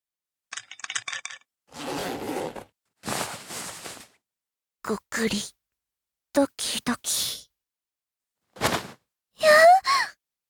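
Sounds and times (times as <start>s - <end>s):
zipper: 1.7s - 4.1s
fabric rustling as pants are tugged down: 1.8s - 4.2s, 8.6s - 9.0s
speech: 4.9s - 5.6s, 6.4s - 7.4s.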